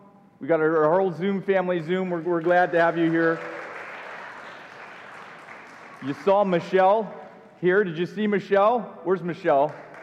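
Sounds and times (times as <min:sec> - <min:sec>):
speech: 0:00.4 - 0:03.6, 0:06.0 - 0:09.8
audience applause: 0:02.2 - 0:07.0, 0:09.6 - 0:10.0.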